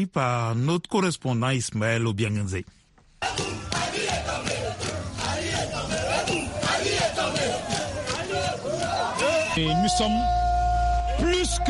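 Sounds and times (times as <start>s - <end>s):
speech: 0.0s - 3.5s, 9.6s - 10.4s, 11.2s - 11.6s
crowd in Libreville cheering in jubilation: 3.2s - 11.6s.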